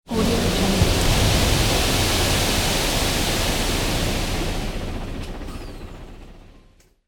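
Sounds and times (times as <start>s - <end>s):
truck dumping sand: 0.1s - 5.1s.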